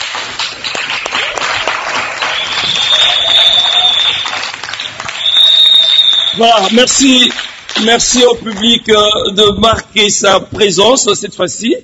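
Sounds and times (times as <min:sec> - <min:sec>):
audience applause in conference hall: 0:00.0 - 0:08.8
thin high whistling tone: 0:02.3 - 0:07.5
speech: 0:06.4 - 0:11.8.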